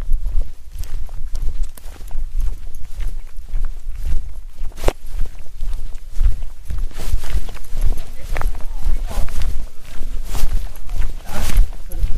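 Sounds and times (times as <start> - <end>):
footsteps crunching in the woods: 0.0 - 12.1.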